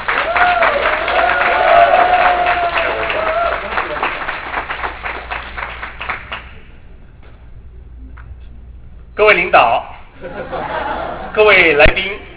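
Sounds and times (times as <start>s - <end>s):
audience cheering: 0.0s - 5.6s
audience applause: 0.0s - 6.6s
laughter: 10.2s - 11.8s
speech: 11.4s - 12.0s.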